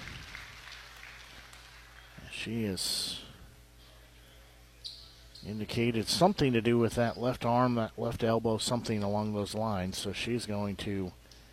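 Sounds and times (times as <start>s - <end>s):
crowd applauding at basketball game: 0.0s - 2.2s
speech: 2.3s - 3.2s, 5.4s - 11.2s.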